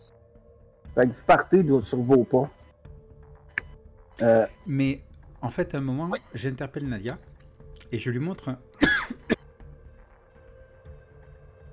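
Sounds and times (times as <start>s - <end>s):
speech: 1.0s - 2.6s, 4.2s - 7.3s, 7.9s - 8.7s
cough: 8.8s - 9.4s.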